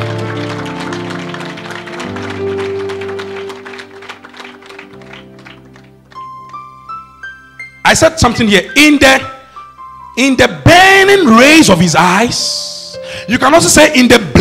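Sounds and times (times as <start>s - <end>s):
audience clapping: 0.0s - 6.8s
speech: 7.9s - 9.3s, 10.2s - 12.6s, 13.3s - 14.3s.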